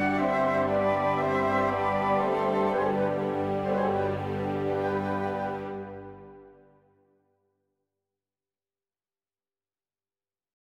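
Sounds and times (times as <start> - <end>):
MIDI ballet-pantomime music: 0.0 - 6.7.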